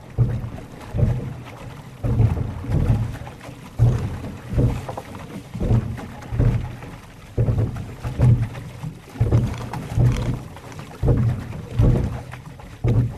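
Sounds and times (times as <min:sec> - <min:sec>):
rowing crew pulling through river water: 0:00.0 - 0:13.1.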